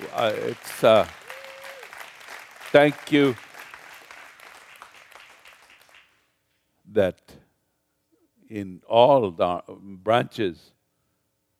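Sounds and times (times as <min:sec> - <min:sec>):
audience applause for veterans: 0:00.0 - 0:06.2
speech: 0:00.2 - 0:01.2, 0:02.8 - 0:03.5, 0:06.9 - 0:07.4, 0:08.5 - 0:10.8.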